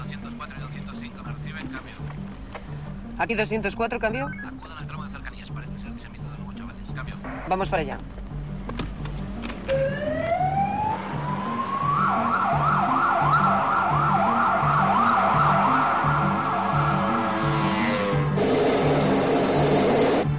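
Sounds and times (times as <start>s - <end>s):
speech: 3.2s - 4.5s, 7.5s - 8.1s
police car siren driving through streets: 9.7s - 20.3s.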